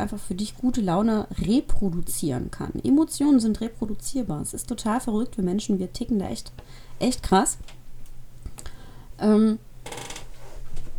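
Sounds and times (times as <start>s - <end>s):
speech: 0.0s - 7.8s, 9.2s - 10.0s
chair creaking: 9.8s - 10.9s.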